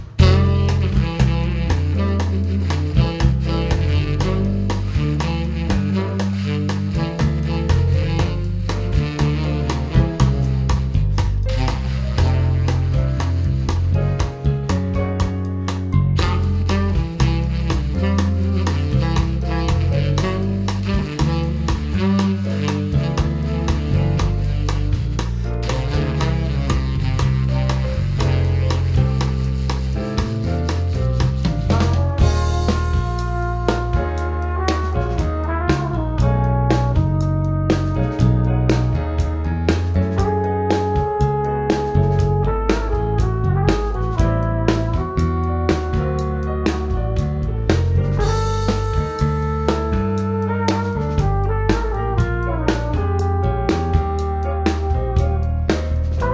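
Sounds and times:
quintet playing: 0.2s - 56.3s.

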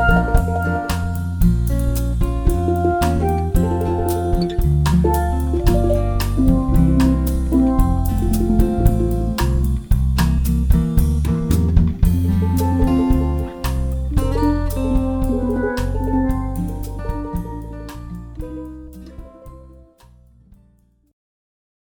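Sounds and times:
steel drum band playing: 0.0s - 19.8s.

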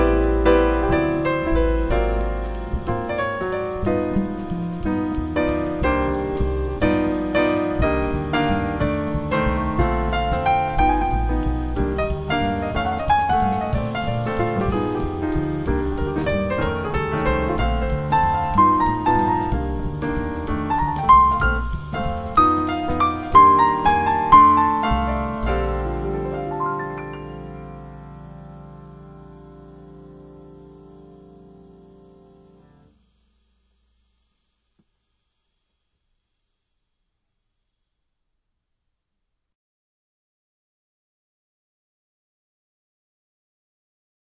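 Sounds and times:
soft jazz trio instrumental by a cover band for cocktail dinner ambiance: 0.0s - 33.1s.

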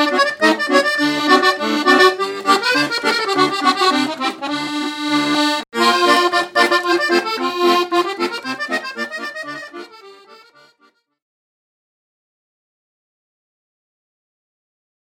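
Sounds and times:
klezmer accordion: 0.0s - 11.2s.

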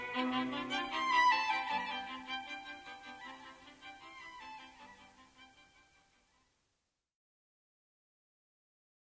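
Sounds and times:
string quartet: 0.0s - 6.0s.

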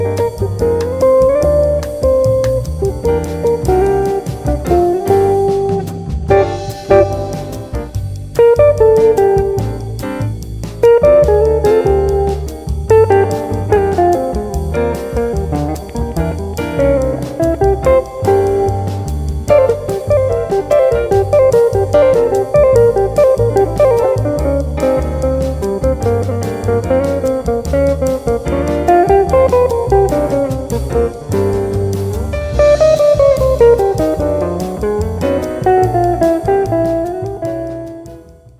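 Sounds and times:
Latin jazz guitar: 0.0s - 38.5s.

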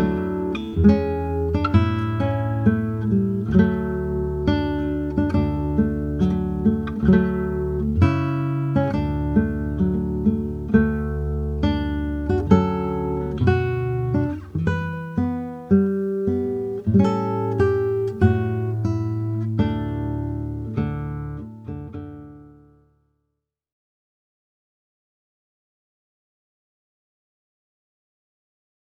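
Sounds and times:
guitar: 0.0s - 23.0s.

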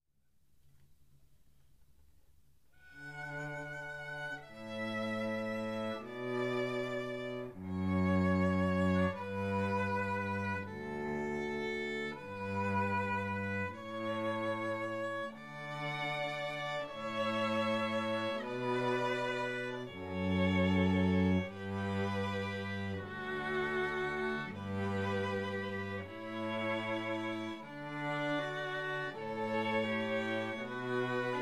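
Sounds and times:
string trio playing: 2.6s - 31.3s.

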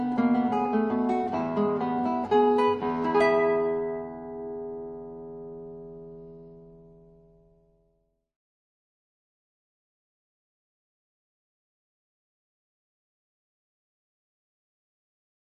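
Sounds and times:
Venezuelan waltz on classical guitar: 0.0s - 7.8s.

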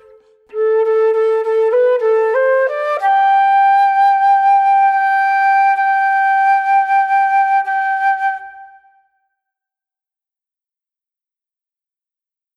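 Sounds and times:
solo flute: 0.0s - 9.3s.

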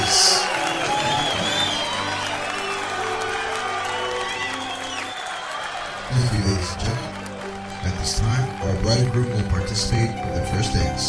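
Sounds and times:
wedding guests applauding and cheering: 0.0s - 11.0s
speech: 8.6s - 11.0s.

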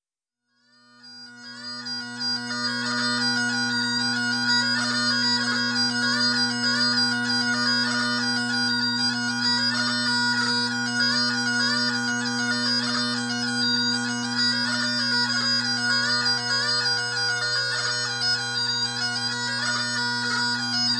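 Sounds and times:
Scottish hornpipe on bagpipes: 0.6s - 20.9s.

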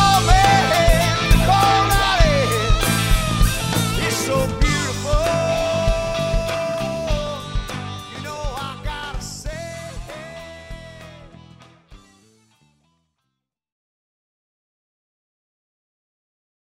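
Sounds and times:
southern rock band playing: 0.0s - 12.6s.

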